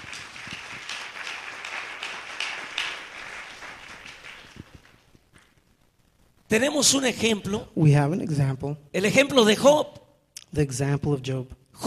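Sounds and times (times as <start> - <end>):
audience clapping hands: 0.0 - 5.9
speech: 6.5 - 11.8.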